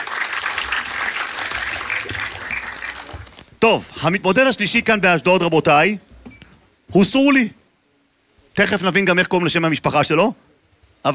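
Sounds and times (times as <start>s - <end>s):
crowd clapping: 0.0s - 3.5s
speech: 3.6s - 6.1s, 6.9s - 7.6s, 8.6s - 11.1s.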